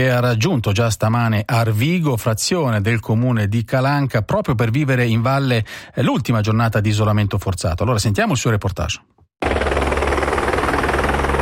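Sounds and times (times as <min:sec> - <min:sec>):
speech: 0:00.0 - 0:09.5
helicopter rotor thumping: 0:09.4 - 0:11.4.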